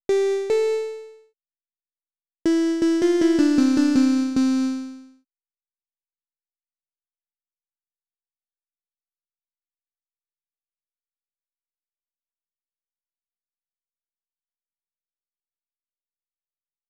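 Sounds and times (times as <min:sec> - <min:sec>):
melody: 0:00.1 - 0:01.2, 0:02.5 - 0:05.1.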